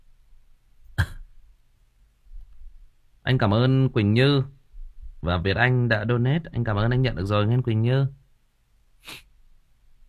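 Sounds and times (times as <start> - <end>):
cough: 1.0 - 1.3
speech: 3.3 - 4.6, 5.2 - 8.2, 9.0 - 9.2.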